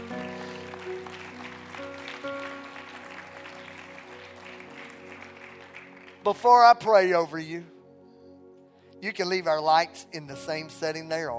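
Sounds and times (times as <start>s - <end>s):
audience clapping hands: 0.0s - 6.6s
speech: 6.3s - 7.7s, 9.0s - 11.3s.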